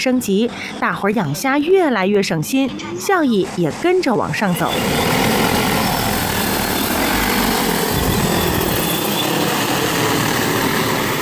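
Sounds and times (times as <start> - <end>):
speech: 0.0 - 5.6
drone propellers buzzing while feeding shrimp: 2.4 - 11.2.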